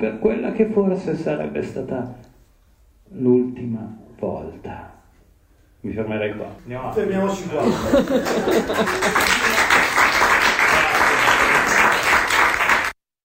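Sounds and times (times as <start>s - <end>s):
speech: 0.0s - 2.3s, 3.1s - 4.9s, 5.8s - 9.6s
laughter: 7.6s - 9.8s
burst of applause: 8.1s - 13.0s.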